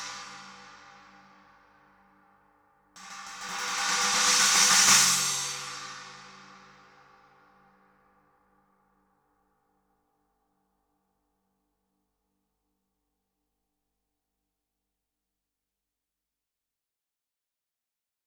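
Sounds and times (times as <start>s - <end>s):
china cymbal: 3.0s - 7.6s.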